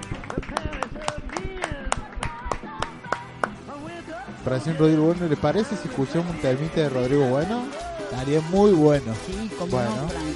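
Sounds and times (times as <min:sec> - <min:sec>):
scattered applause: 0:00.0 - 0:03.6
speech: 0:04.4 - 0:10.3.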